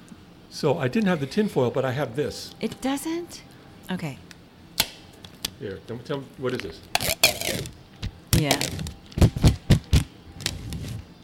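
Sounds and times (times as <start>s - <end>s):
speech: 0.6s - 4.3s, 5.6s - 7.1s, 8.4s - 9.0s
adhesive tape pulled off the roll: 6.9s - 7.8s, 8.4s - 11.1s.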